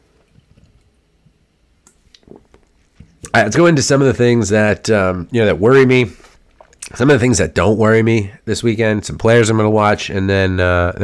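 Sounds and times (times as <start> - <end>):
person sipping a drink: 1.9 - 3.3, 6.2 - 7.0
speech: 3.4 - 6.2, 6.9 - 11.0.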